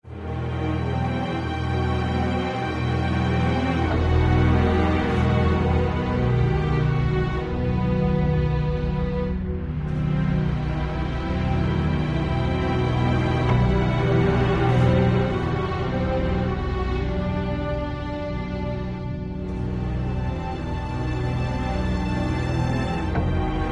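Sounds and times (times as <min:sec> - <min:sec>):
linear spooky music: 0:00.0 - 0:23.7.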